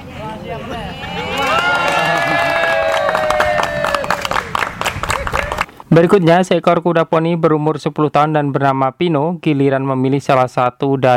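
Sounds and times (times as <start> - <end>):
audience applause: 1.1 - 5.7
speech: 6.0 - 11.1.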